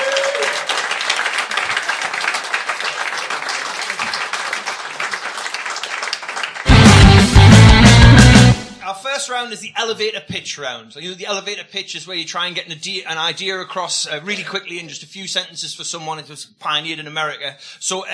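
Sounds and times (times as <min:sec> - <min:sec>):
audience applause welcoming a guest onto a comedy panel game: 0:00.0 - 0:08.6
bass-heavy burst: 0:06.7 - 0:08.8
speech: 0:09.2 - 0:18.1.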